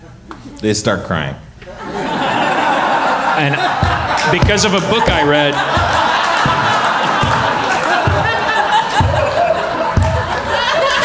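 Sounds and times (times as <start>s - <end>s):
speech: 0.4s - 1.5s, 3.4s - 6.0s
scattered laughter: 1.8s - 11.0s
slow sarcastic clapping: 4.1s - 4.4s, 5.5s - 10.5s.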